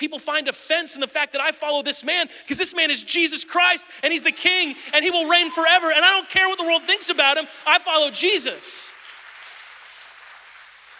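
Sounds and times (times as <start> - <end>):
speech: 0.0 - 9.0
audience clapping: 4.4 - 10.9.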